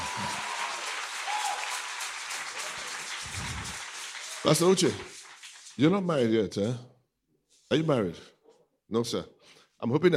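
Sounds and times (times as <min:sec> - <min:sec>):
audience clapping hands: 0:00.0 - 0:06.3
speech: 0:04.4 - 0:05.2, 0:05.8 - 0:06.9, 0:07.7 - 0:08.3, 0:08.9 - 0:10.1.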